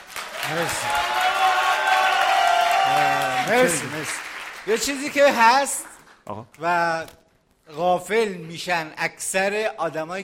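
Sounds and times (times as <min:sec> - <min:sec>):
crowd applause: 0:00.0 - 0:05.4
speech: 0:00.5 - 0:01.2, 0:02.9 - 0:10.2.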